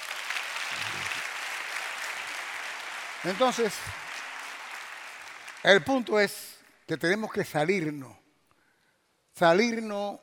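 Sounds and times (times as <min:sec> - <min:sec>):
audience applause: 0:00.0 - 0:05.9
speech: 0:03.2 - 0:04.0, 0:05.6 - 0:08.2, 0:09.4 - 0:10.2.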